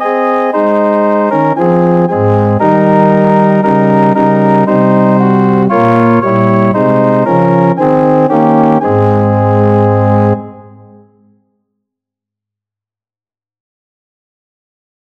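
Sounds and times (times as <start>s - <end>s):
organ: 0.0s - 11.3s.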